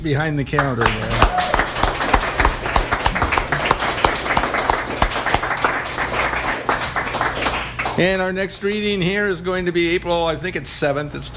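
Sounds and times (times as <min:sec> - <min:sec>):
speech: 0:00.0 - 0:01.2, 0:08.0 - 0:11.3
audience applause: 0:00.6 - 0:08.0.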